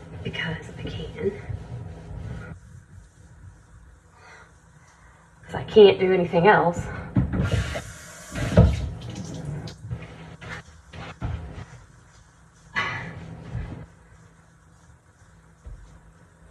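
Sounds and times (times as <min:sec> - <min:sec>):
speech: 0:00.3 - 0:01.5, 0:05.8 - 0:07.0
dishes being washed: 0:07.4 - 0:09.8
water running in sink: 0:07.4 - 0:10.4.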